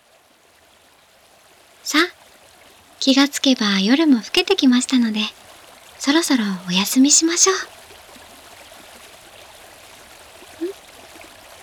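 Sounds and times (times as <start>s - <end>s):
babbling stream of spring water: 0.0s - 11.6s
speech: 1.9s - 2.1s, 3.0s - 5.4s, 6.0s - 7.8s.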